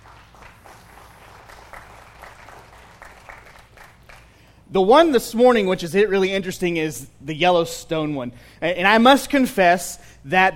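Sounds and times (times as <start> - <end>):
audience applause: 0.0 - 4.4
speech: 4.7 - 10.5.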